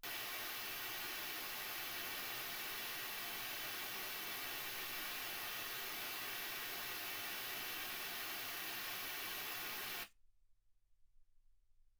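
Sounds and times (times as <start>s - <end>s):
white gaussian noise at 48kHz: 0.0s - 10.1s.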